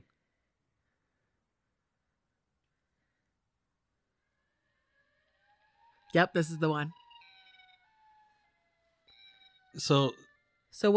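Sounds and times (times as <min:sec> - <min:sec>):
faint multi-tone drone: 0:04.0 - 0:10.9
Siren Head siren distorted voice-like wail: 0:04.2 - 0:10.9
speech: 0:06.1 - 0:07.0, 0:09.8 - 0:10.9.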